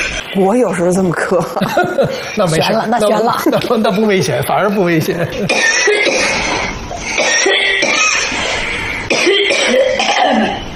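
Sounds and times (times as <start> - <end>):
speech: 0.4 - 6.2
laughter: 1.3 - 6.7
coughing: 1.6 - 10.7.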